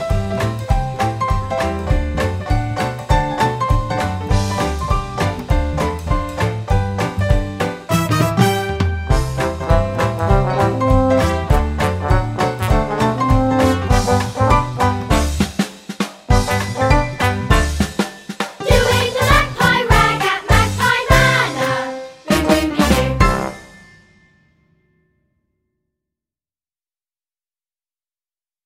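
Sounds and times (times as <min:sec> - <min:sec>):
ragtime piece: 0:00.5 - 0:15.6, 0:16.3 - 0:23.8.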